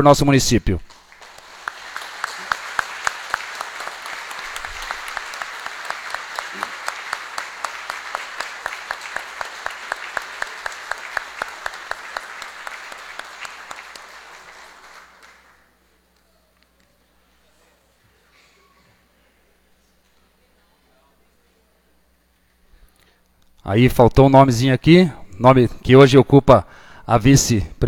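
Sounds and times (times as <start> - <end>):
speech: 0.0 - 0.9, 23.7 - 27.8
warm round of applause: 0.8 - 15.8.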